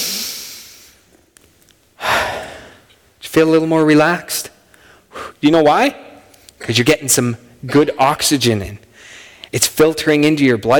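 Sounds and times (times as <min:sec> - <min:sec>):
people breathing in through the nose and out through the mouth: 0:00.0 - 0:01.0, 0:02.0 - 0:02.8
soft sniffs: 0:00.0 - 0:01.0
speech: 0:03.4 - 0:04.4, 0:05.4 - 0:06.0, 0:06.6 - 0:08.8, 0:09.5 - 0:10.7.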